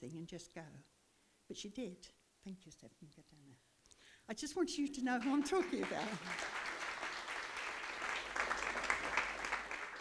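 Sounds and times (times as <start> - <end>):
speech: 0.0 - 3.7, 4.3 - 6.7
crowd audience clapping: 5.2 - 9.9.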